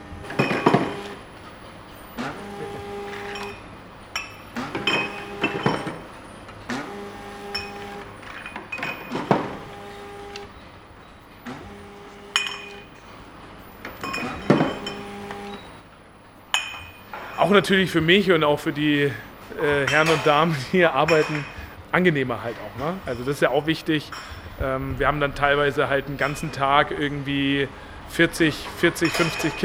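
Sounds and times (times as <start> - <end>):
labelling, filling and corking line machine hum: 0.0 - 29.6
glass bottles clinking on a labelling, filling and corking line: 0.3 - 1.2, 3.0 - 6.2, 7.5 - 9.6, 12.3 - 13.2, 13.9 - 15.7, 16.5 - 17.7, 19.7 - 21.7, 24.1 - 24.4, 26.1 - 26.7, 28.9 - 29.6
speech: 17.5 - 29.6.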